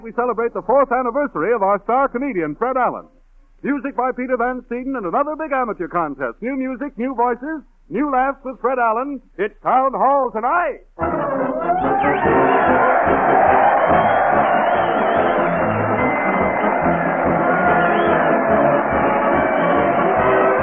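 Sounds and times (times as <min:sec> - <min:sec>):
speech: 0:00.0 - 0:12.4
crowd cheering: 0:11.0 - 0:20.6.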